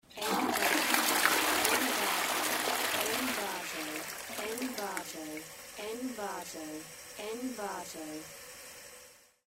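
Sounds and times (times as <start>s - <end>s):
toilet flushing: 0.0s - 7.1s.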